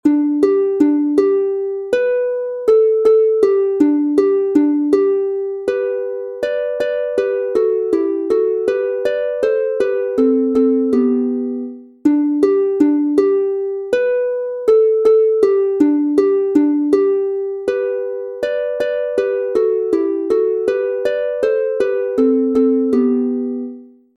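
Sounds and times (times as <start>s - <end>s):
two-voice harp instrumental in G major: 0.0s - 23.9s.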